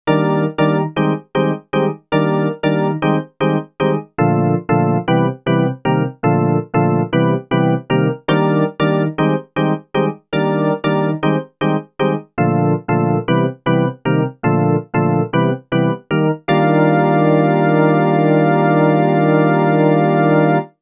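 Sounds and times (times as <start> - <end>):
organ: 0.1 - 20.7.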